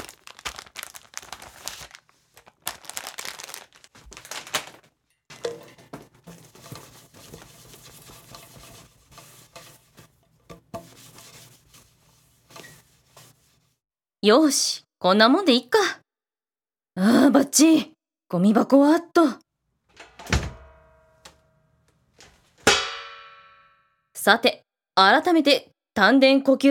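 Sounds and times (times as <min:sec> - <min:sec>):
wiping table and chairs with wet tissues: 0:00.0 - 0:13.8
speech: 0:14.2 - 0:16.0, 0:17.5 - 0:19.4, 0:24.2 - 0:26.7.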